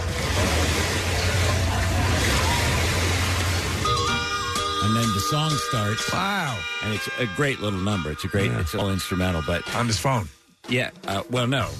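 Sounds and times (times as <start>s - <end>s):
ocean surf on a beach: 0.0s - 7.4s
speech: 5.2s - 11.7s.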